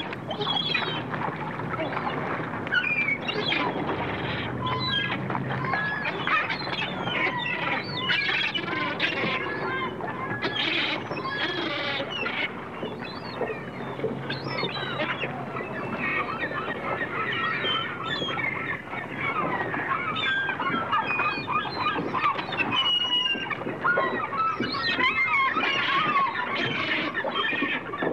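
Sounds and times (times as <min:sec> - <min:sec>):
engines rumbling: 0:00.0 - 0:10.4, 0:12.0 - 0:22.3
gulls calling: 0:00.0 - 0:28.1
low rumble of surf: 0:00.0 - 0:28.1.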